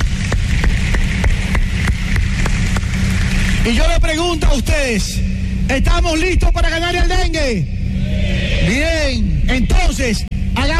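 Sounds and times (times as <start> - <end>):
audience applauding: 0.0 - 3.9
speech: 3.6 - 7.8, 8.7 - 10.7.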